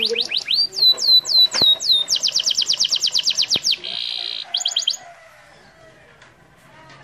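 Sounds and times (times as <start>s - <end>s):
canary singing: 0.0s - 5.2s.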